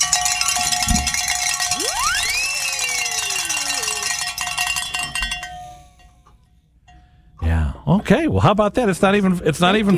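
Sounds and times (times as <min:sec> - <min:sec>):
bells ringing: 0:00.0 - 0:07.3
speech: 0:07.9 - 0:09.9.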